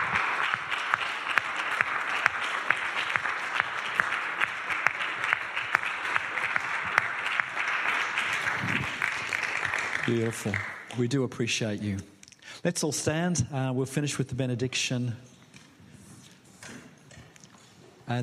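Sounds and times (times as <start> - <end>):
audience applause: 0.0 - 11.0
speech: 10.1 - 15.3.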